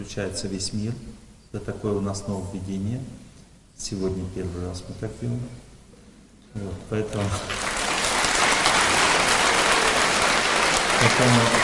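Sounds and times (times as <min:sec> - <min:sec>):
speech: 0:00.0 - 0:03.2, 0:03.8 - 0:05.7, 0:06.5 - 0:07.6, 0:11.0 - 0:11.6
audience clapping: 0:07.1 - 0:11.6.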